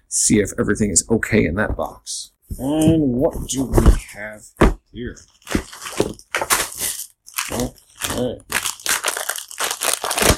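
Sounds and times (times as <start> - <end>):
speech: 0.1 - 6.5, 7.5 - 8.6
vacuum-sealed package plastic crinkling: 5.2 - 10.3.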